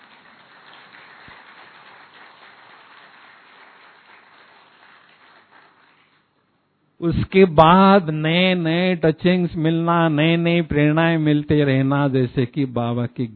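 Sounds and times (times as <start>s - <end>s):
audience clapping: 0.0s - 6.3s
speech: 7.0s - 13.3s.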